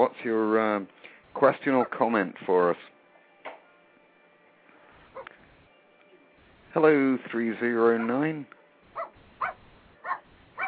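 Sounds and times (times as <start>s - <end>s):
speech: 0.0s - 3.0s, 6.8s - 8.6s
dog barking on a phone call: 1.8s - 2.0s, 5.1s - 5.4s, 7.9s - 8.2s, 9.0s - 10.6s.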